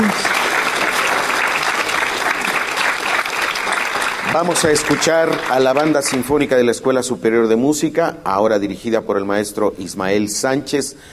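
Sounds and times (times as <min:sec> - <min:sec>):
audience applause: 0:00.0 - 0:06.6
speech: 0:04.4 - 0:11.1.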